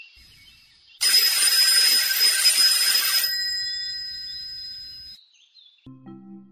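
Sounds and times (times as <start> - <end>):
bell ringing: 1.0 - 5.2.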